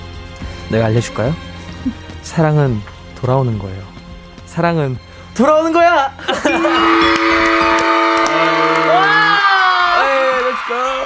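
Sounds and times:
speech: 0:00.7 - 0:03.9, 0:04.6 - 0:08.0
laughter: 0:06.2 - 0:09.3
man screaming at the top of his voice: 0:06.5 - 0:11.0.

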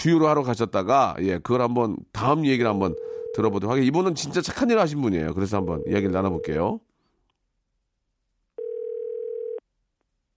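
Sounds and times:
speech: 0:00.0 - 0:06.9
outgoing phone call ringing tone: 0:02.9 - 0:03.6, 0:05.6 - 0:06.6, 0:08.6 - 0:09.6.

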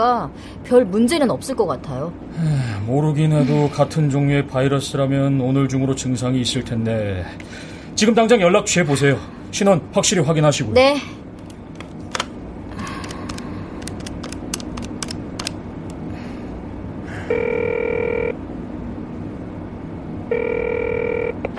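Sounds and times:
speech: 0:00.0 - 0:11.2
telephone ringing unanswered: 0:17.3 - 0:18.4, 0:20.3 - 0:21.4.

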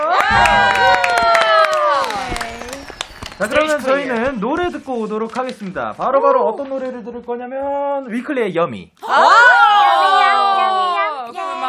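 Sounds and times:
cheering: 0:00.0 - 0:03.7, 0:09.0 - 0:11.6
applause: 0:00.0 - 0:04.1
speech: 0:03.4 - 0:09.5.

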